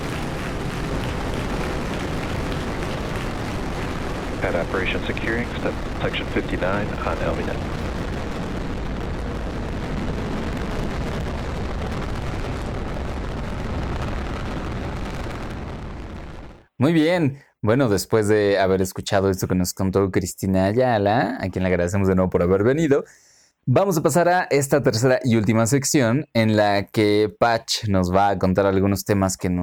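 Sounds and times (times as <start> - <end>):
rocket launch roar: 0.0 - 16.6
speech: 4.4 - 7.8, 16.8 - 29.6.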